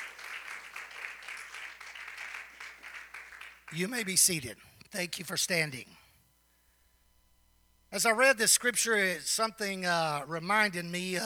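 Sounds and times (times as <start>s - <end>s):
audience clapping hands: 0.0s - 4.2s
speech: 3.7s - 6.0s, 7.9s - 11.2s.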